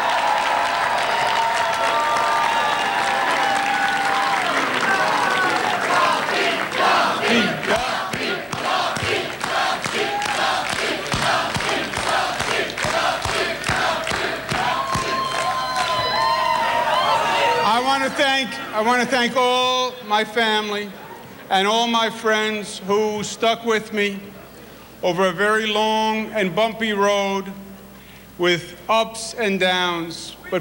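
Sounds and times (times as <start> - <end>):
audience applause and cheering: 0.0 - 19.0
speech: 18.8 - 24.4, 25.0 - 27.6, 28.4 - 30.6.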